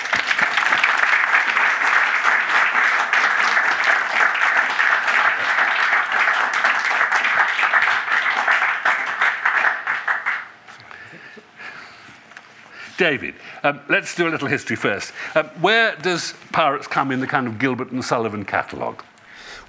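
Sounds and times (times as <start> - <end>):
audience applause welcoming two guests at the English National Opera: 0.0 - 10.7
speech: 13.0 - 19.1.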